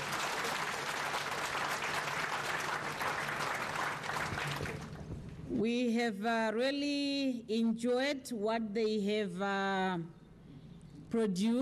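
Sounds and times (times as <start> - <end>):
audience applause: 0.0 - 5.2
speech: 5.5 - 10.2, 11.1 - 11.6.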